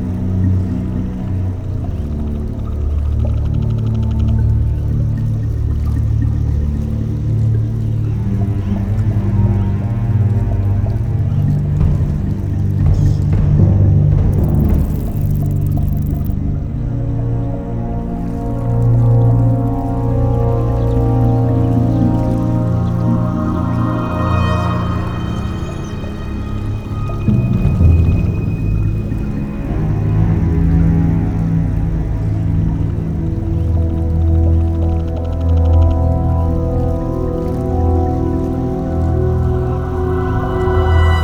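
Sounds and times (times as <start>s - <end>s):
swamp ambience: 0.0s - 41.2s.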